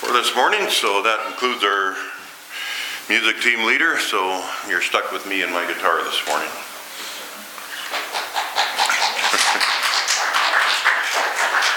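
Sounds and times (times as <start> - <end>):
speech: 0.1 - 2.2, 3.1 - 6.7
people clapping: 7.9 - 11.7.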